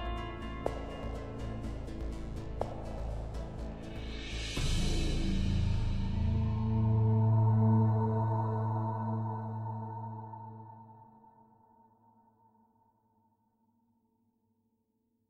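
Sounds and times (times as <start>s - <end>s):
suspense background music: 0.0s - 11.2s.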